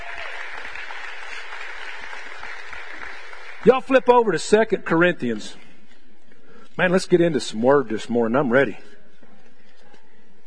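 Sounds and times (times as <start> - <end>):
round of applause: 0.0 - 3.9
speech: 3.6 - 5.6, 6.8 - 8.9.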